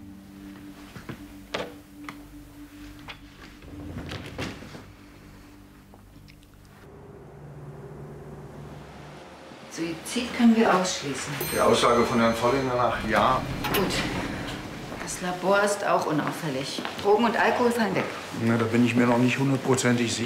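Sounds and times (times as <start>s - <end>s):
speech: 9.8s - 14.2s, 15.2s - 20.2s
door being closed: 12.6s - 15.2s.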